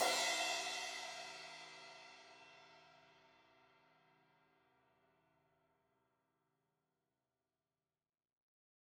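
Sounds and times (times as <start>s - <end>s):
16-inch crash cymbal hit on the edge: 0.0s - 2.2s.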